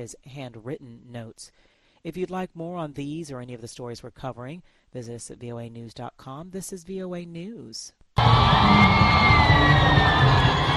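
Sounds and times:
speech: 0.0 - 10.7
high whistle-like tones: 8.2 - 10.7
huge crowd cheering at Kinshasa's Ndolo Airport to welcome Pope Francis: 8.2 - 10.7.

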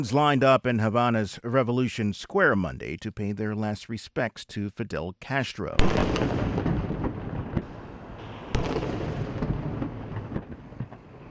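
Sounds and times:
speech: 0.0 - 6.5
artillery 21-gun salute at Fidel Castro memorial in Havana: 5.8 - 11.2.

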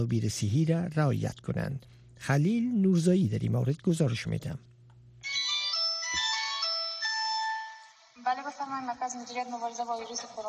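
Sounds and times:
speech: 0.0 - 4.7, 8.6 - 10.4
phone ringtone at a coronavirus hotline centre in Herat: 5.2 - 8.0.

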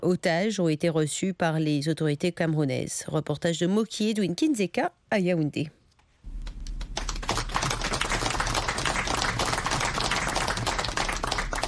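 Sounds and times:
speech: 0.0 - 5.8
crowd applauding arrival of freed hostages: 6.4 - 11.6.

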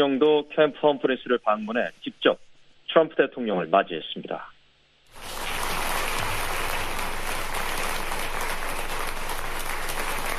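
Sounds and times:
speech: 0.0 - 4.5
applause: 5.1 - 10.3.

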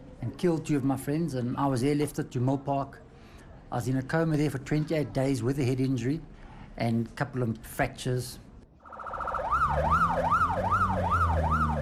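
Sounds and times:
speech: 0.2 - 3.0, 3.7 - 8.4, 9.8 - 10.0
police vehicle siren wailing, rushing to crash: 8.8 - 11.8.

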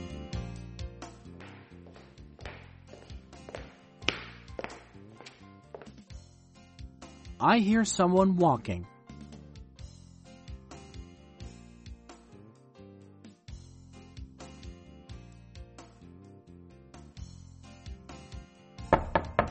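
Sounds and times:
speech: 7.4 - 8.9
knocking on a door: 18.9 - 19.4.

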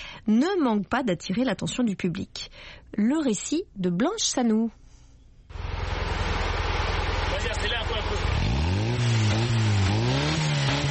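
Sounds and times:
speech: 0.2 - 4.8
small blue pickup truck engine, built from recycled parts, in Bafoussam: 5.5 - 10.8.

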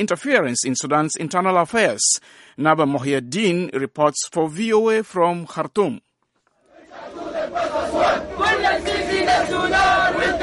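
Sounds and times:
speech: 0.0 - 6.1
protesters chanting and shouting: 6.7 - 10.4.

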